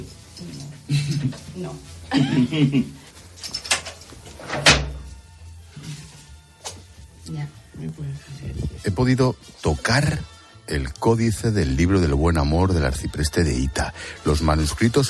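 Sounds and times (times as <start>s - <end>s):
speech: 0.0s - 3.6s, 8.0s - 15.0s
heavy library door guarding rare books and manuscripts shutting: 4.4s - 5.1s.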